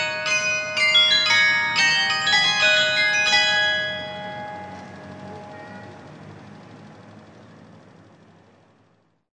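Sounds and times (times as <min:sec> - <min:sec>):
carillon bells: 0:00.0 - 0:06.4.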